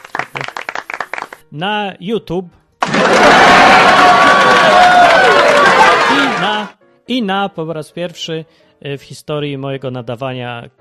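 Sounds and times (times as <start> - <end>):
applause and cheering sound effect: 0.0 - 1.5, 2.8 - 6.7
speech: 1.5 - 5.4, 6.1 - 10.7.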